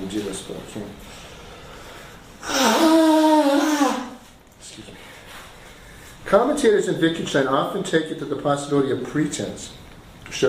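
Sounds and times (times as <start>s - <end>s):
speech: 0.1s - 1.3s, 6.3s - 10.4s
nose blowing: 2.4s - 4.3s.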